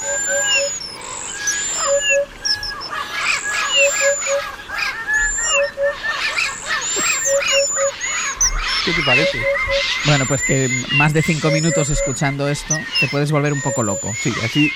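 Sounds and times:
many birds singing at once: 0:00.0 - 0:14.7
speech: 0:08.9 - 0:14.7.

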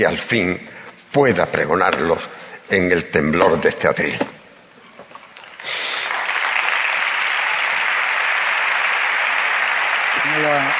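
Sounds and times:
speech: 0:00.0 - 0:04.4
large audience applause: 0:05.4 - 0:10.7.

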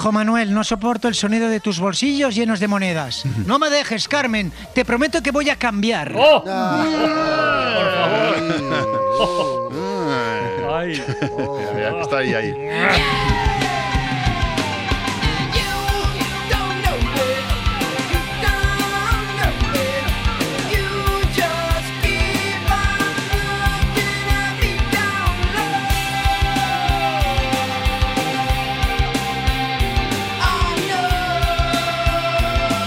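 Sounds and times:
speech: 0:00.0 - 0:09.6, 0:10.8 - 0:13.5
laughter: 0:06.5 - 0:13.6
loud rock song: 0:11.0 - 0:32.8.

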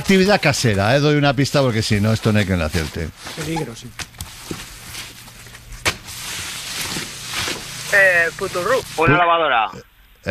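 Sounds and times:
speech: 0:00.1 - 0:04.7, 0:07.9 - 0:10.2
mopping the floor with a mop: 0:01.6 - 0:09.0.

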